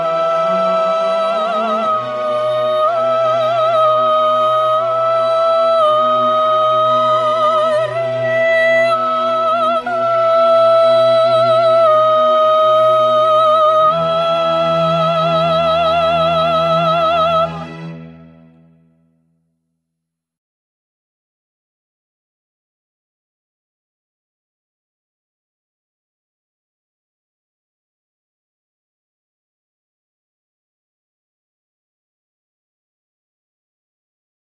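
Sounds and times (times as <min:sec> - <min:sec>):
soprano singing: 0:00.0 - 0:18.7.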